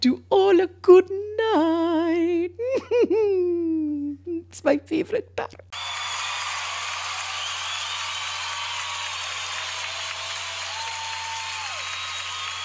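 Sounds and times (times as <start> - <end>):
speech: 0.0 - 3.6, 4.6 - 6.0
audience applause: 5.8 - 12.6.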